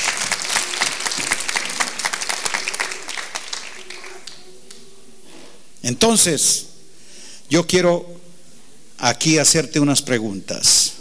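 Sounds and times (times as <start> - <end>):
audience applause: 0.0 - 4.5
speech: 5.9 - 6.7, 7.5 - 8.2, 9.0 - 11.0.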